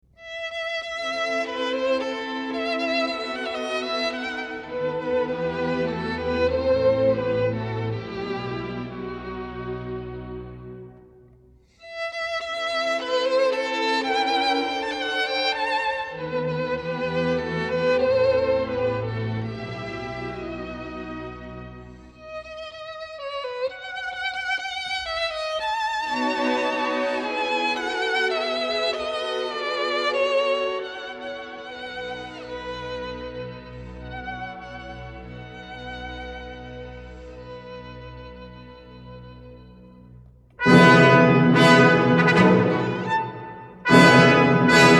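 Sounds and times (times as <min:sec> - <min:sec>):
violin and orchestra concerto: 0:00.1 - 0:44.9.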